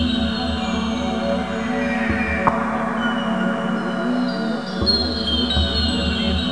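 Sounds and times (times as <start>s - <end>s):
bol ambient sound: 0.0s - 6.5s.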